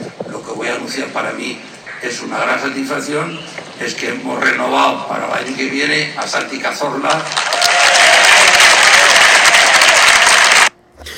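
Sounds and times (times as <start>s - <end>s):
speech: 0.8s - 7.6s
audience applause: 6.2s - 10.7s.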